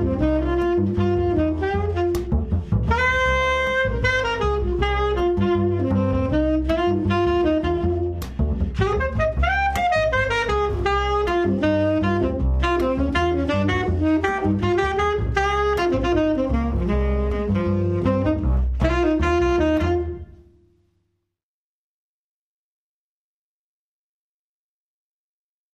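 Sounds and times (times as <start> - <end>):
unplugged duo playing: 0.0 - 20.2.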